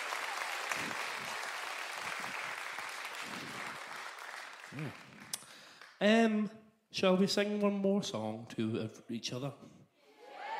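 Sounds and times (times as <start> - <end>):
audience round of applause: 0.0 - 5.9
speech: 4.7 - 5.1, 6.0 - 9.7.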